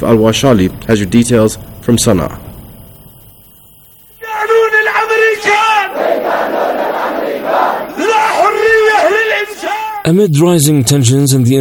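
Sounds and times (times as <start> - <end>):
speech: 0.0 - 2.5, 10.1 - 11.5
protest crowd chanting in the streets: 5.1 - 10.0.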